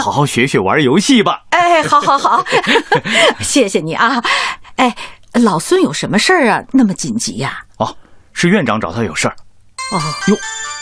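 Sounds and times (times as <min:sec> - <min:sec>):
speech: 0:00.0 - 0:10.8
laughter: 0:01.8 - 0:03.6
phone ringtone: 0:09.8 - 0:10.8.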